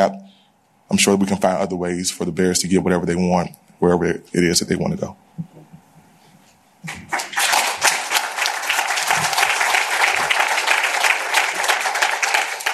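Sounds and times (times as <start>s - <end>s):
speech: 0.9s - 5.5s
audience applause: 6.9s - 12.7s.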